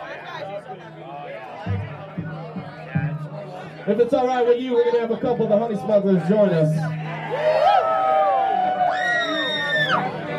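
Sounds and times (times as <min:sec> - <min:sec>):
speech: 0:00.4 - 0:03.0, 0:03.9 - 0:07.6
audience screaming: 0:07.1 - 0:10.3.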